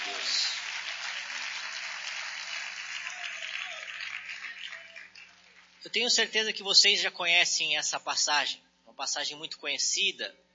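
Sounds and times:
audience clapping hands in praise: 0.0 - 5.7
speech: 5.8 - 10.5.

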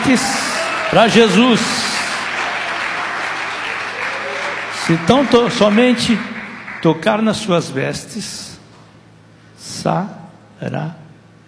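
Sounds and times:
church congregation clapping for Jesus: 0.0 - 7.7
speech: 0.1 - 1.9, 4.9 - 8.5, 9.6 - 11.0.

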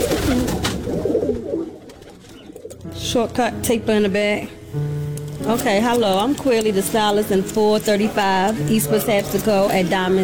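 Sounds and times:
pigeons cooing: 0.0 - 2.9
speech: 3.1 - 10.2.

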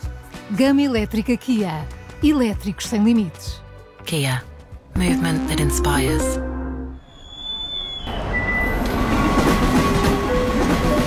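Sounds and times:
speech: 0.5 - 6.5
thin high tones: 5.1 - 7.2
train rumbling at Termini railway station in Rome: 8.2 - 11.0.

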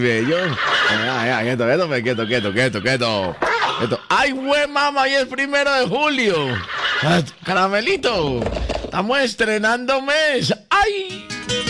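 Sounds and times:
laughter: 0.0 - 4.4, 5.8 - 8.0
speech: 0.0 - 11.6
small horse whinnying: 3.3 - 4.0.

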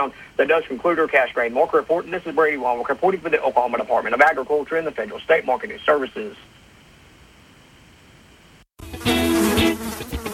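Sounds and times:
speech: 0.0 - 6.5
flies buzzing: 8.8 - 10.3.

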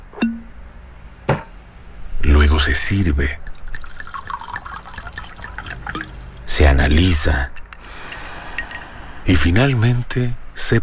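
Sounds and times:
rum bottle being uncorked: 0.1 - 0.6, 3.4 - 9.6
speech: 2.6 - 3.5, 6.6 - 7.6, 9.3 - 10.8.

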